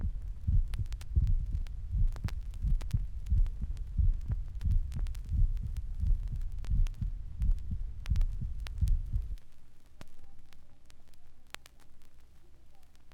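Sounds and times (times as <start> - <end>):
heartbeats: 0.0 - 9.4.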